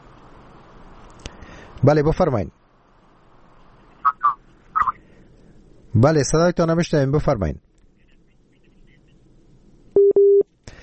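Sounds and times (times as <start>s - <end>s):
speech: 1.8s - 2.6s, 6.0s - 7.6s
telephone busy tone after call disconnects: 10.0s - 10.4s.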